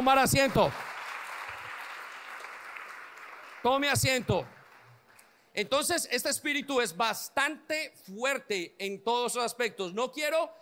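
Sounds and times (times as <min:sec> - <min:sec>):
speech: 0:00.0 - 0:00.8, 0:03.6 - 0:04.6, 0:05.6 - 0:10.5
crowd applauding: 0:00.0 - 0:05.4.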